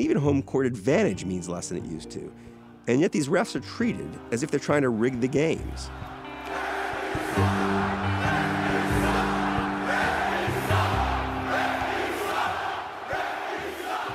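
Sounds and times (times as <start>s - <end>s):
speech: 0.0s - 7.7s
arena crowd screaming and booing: 4.9s - 14.1s.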